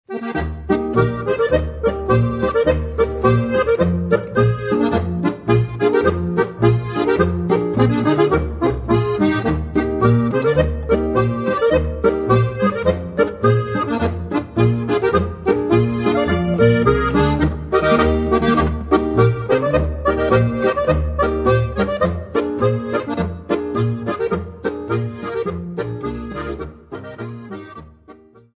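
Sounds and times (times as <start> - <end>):
polka music: 0.1 - 28.5.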